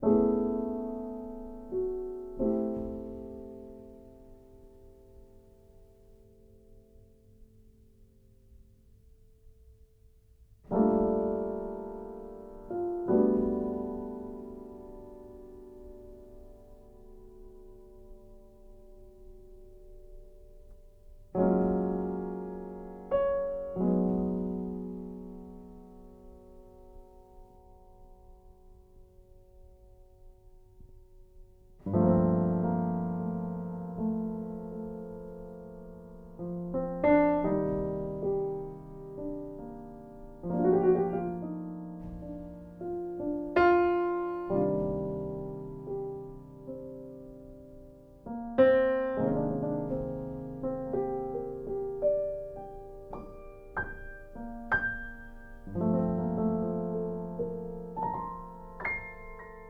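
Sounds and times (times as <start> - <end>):
piano: 0.0 - 59.6.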